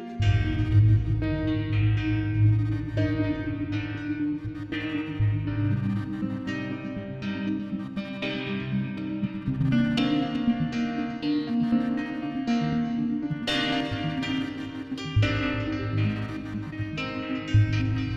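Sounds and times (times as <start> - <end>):
heavy low bass layer: 0.2 - 7.2
synth tones with reverb: 0.2 - 18.1.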